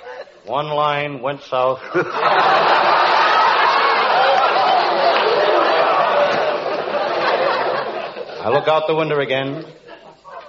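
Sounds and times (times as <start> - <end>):
speech: 0.4 - 2.9, 8.4 - 9.8
laughter: 1.8 - 10.4
crowd chatter of Christmas shoppers: 2.7 - 9.0, 9.6 - 10.4.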